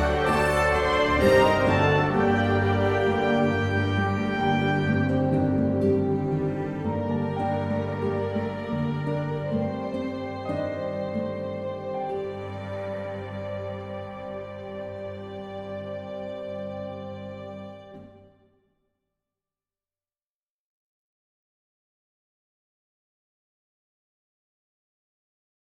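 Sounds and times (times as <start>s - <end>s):
instrumental music: 0.0s - 18.5s.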